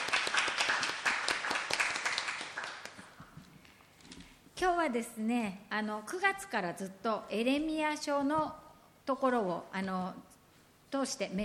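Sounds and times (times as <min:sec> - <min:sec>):
audience applause: 0:00.0 - 0:03.1
speech: 0:04.6 - 0:10.3, 0:10.9 - 0:11.4.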